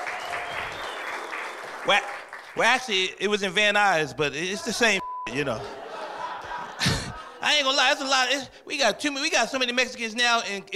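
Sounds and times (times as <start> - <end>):
audience applause: 0.0 - 2.6
speech: 1.8 - 5.8, 7.4 - 10.7
laughter: 5.4 - 7.6.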